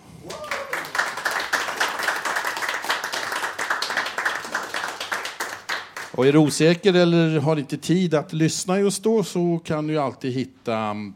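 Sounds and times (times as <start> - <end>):
crowd applauding: 0.2 - 6.6
speech: 6.2 - 11.1.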